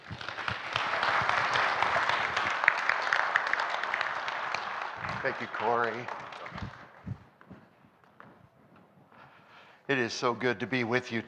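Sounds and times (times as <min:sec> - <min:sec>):
audience applause welcoming a guest pastor to the stage: 0:00.0 - 0:07.4
speech: 0:05.2 - 0:06.7, 0:09.9 - 0:11.2.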